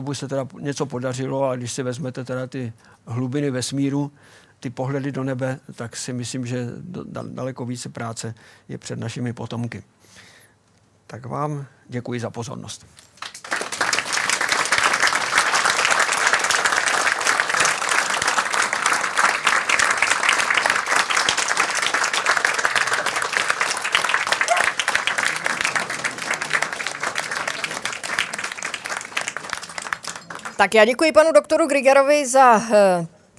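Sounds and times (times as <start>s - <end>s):
speech: 0.0s - 10.3s, 11.1s - 13.1s, 30.6s - 33.2s
audience applause after a lecture: 13.2s - 30.8s.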